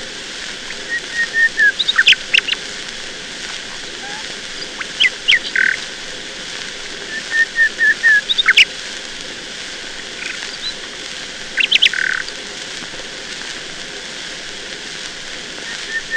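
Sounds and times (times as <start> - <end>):
nightingale singing: 0.7 - 2.6, 3.5 - 5.8, 7.1 - 8.7, 11.6 - 12.3.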